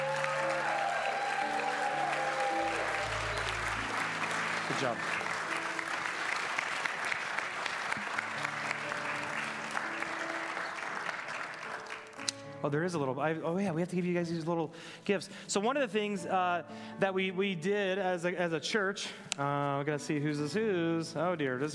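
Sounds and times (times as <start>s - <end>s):
audience applause: 0.0s - 12.3s
speech: 4.7s - 5.2s, 12.6s - 21.7s.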